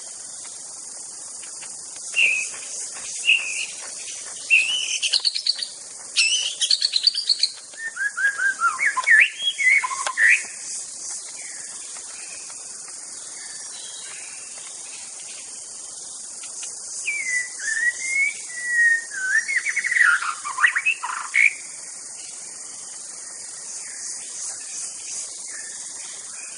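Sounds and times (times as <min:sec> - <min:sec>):
insect buzz: 0:00.0 - 0:26.5
white-rumped shama song: 0:02.1 - 0:10.6, 0:17.0 - 0:21.6.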